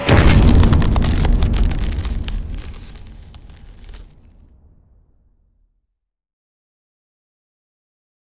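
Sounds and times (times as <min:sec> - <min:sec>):
impact: 0:00.1 - 0:05.3.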